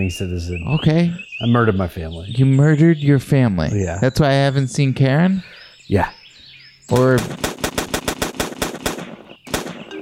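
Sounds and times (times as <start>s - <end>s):
speech: 0.0s - 6.2s, 6.9s - 7.5s
gunshots fired into the air: 6.9s - 10.0s.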